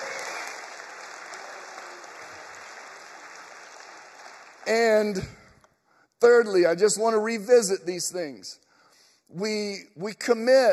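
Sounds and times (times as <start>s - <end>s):
audience clapping: 0.0s - 5.5s
speech: 4.7s - 5.4s, 6.2s - 8.7s, 9.3s - 10.7s.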